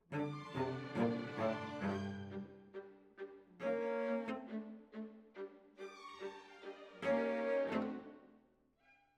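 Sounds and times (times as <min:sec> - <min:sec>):
cellos playing: 0:00.1 - 0:05.6, 0:07.0 - 0:08.2.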